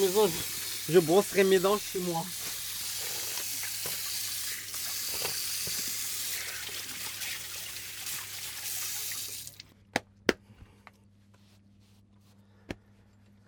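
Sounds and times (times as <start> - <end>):
speech: 0.0 - 2.4
running tap water: 0.0 - 9.7.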